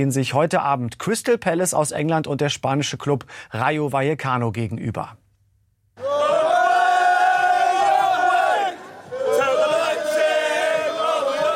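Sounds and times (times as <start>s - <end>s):
speech: 0.0s - 5.2s
football fans singing in a stadium: 6.0s - 11.5s.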